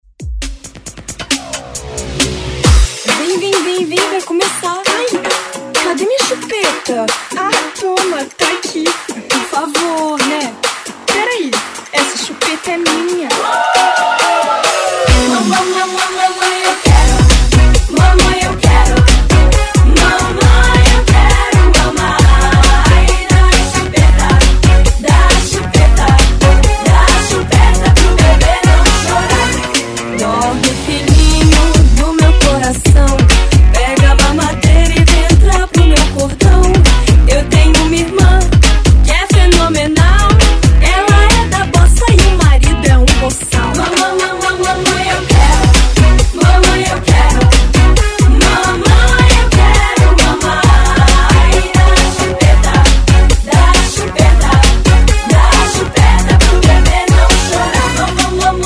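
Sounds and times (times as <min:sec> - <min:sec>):
90s funk music: 0:00.2 - 0:58.6.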